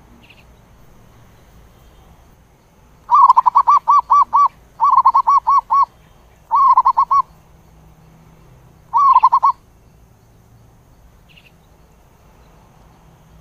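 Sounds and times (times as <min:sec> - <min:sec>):
zebra dove cooing: 0:03.1 - 0:05.9, 0:06.5 - 0:07.3, 0:08.9 - 0:09.6.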